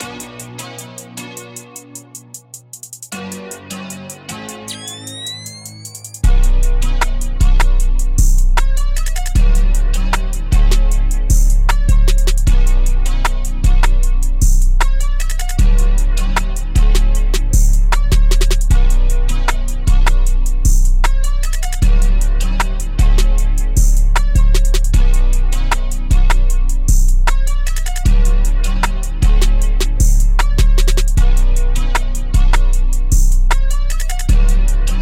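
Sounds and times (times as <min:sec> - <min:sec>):
instrumental music: 0:00.0 - 0:34.9.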